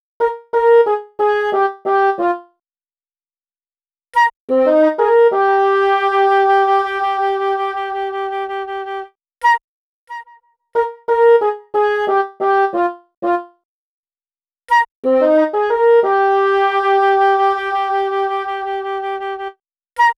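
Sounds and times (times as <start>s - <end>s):
bassoon: 0.2s - 2.6s, 4.5s - 9.1s, 10.1s - 13.6s, 14.7s - 19.6s
flute: 4.2s - 12.1s, 14.7s - 20.1s.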